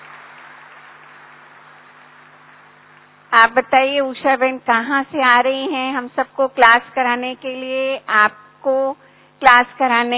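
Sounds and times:
audience applauding to welcome a guest to a class: 0.0s - 2.8s
speech: 3.3s - 10.1s.

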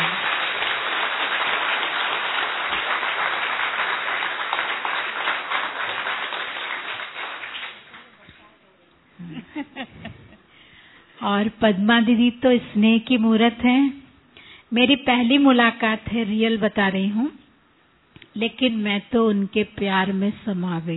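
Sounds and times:
audience clapping loudly: 0.0s - 8.4s
speech: 11.2s - 14.0s, 14.7s - 17.4s, 18.4s - 20.9s.

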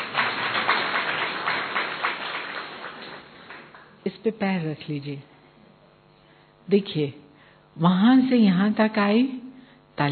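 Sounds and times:
crowd clapping: 0.0s - 4.0s
speech: 4.1s - 5.3s, 6.7s - 7.2s, 7.8s - 9.4s.

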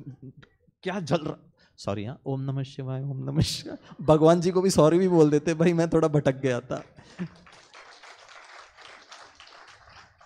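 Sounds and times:
speech: 0.2s - 7.5s
audience clapping: 6.8s - 10.2s.

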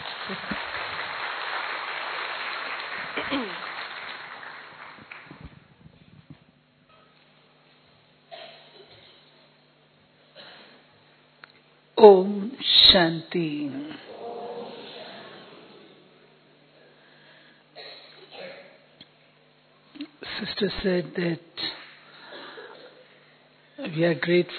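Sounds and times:
audience applause: 0.0s - 5.5s
speech: 0.3s - 0.7s, 3.2s - 3.6s, 12.0s - 14.0s, 20.6s - 21.6s, 23.9s - 24.5s.

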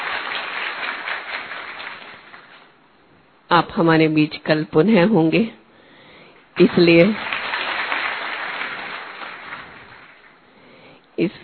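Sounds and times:
audience clapping: 0.0s - 2.8s, 6.6s - 10.6s
speech: 3.5s - 5.6s, 6.6s - 7.3s, 11.2s - 11.4s.

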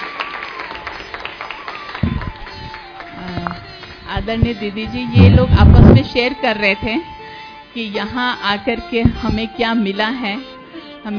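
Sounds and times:
audience applauding loudly: 0.0s - 4.1s
speech: 4.2s - 7.1s, 7.7s - 11.1s.

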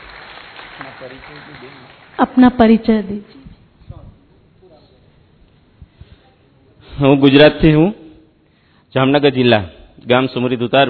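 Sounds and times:
audience applause: 0.0s - 2.2s
speech: 1.0s - 3.4s, 7.0s - 8.0s, 8.9s - 10.8s.

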